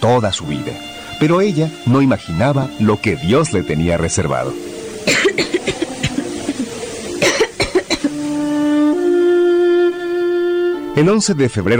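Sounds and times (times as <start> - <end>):
speech: 0.0 - 5.8, 11.0 - 11.7
asthmatic whistling wheeze: 0.0 - 11.0
asthmatic person coughing: 5.0 - 6.6, 7.2 - 8.1.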